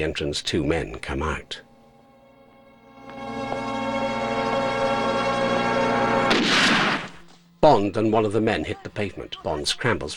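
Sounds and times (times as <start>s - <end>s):
speech: 0.0s - 1.7s, 7.6s - 10.1s
sustained droning tonal background: 0.0s - 10.1s
gunshot from a golden gun in a James Bond film: 6.3s - 7.2s.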